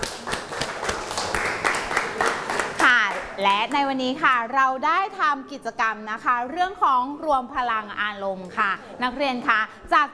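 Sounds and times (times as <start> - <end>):
audience applause for students: 0.0 - 3.4
speech: 3.4 - 10.1.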